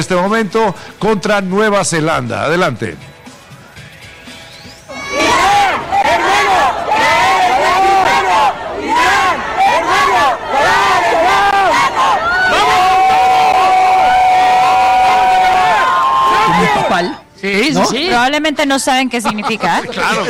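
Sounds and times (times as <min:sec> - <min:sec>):
speech: 0:00.0 - 0:03.1, 0:17.4 - 0:20.2
crowd chanting farewell to departing Iranian team: 0:04.9 - 0:13.0
people shouting: 0:04.9 - 0:17.2
laughter: 0:16.2 - 0:17.2, 0:19.0 - 0:20.2.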